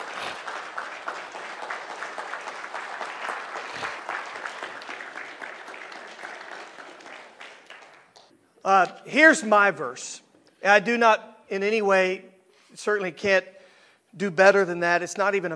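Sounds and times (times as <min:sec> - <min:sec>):
audience applause: 0:00.0 - 0:08.3
speech: 0:08.7 - 0:15.5.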